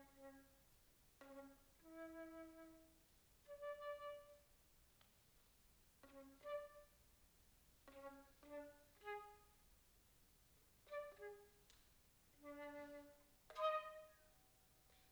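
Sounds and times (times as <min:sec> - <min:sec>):
solo flute piece: 0:01.2 - 0:04.5, 0:06.0 - 0:07.0, 0:07.9 - 0:09.6, 0:10.9 - 0:11.6, 0:12.4 - 0:14.6.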